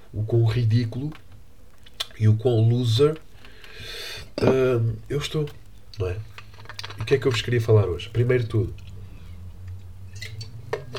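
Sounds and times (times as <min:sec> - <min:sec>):
steady low hum: 0:00.0 - 0:10.9
speech: 0:00.1 - 0:01.2, 0:02.2 - 0:06.3, 0:07.0 - 0:08.8
drinking glass clinking: 0:04.4 - 0:04.7, 0:10.2 - 0:10.9.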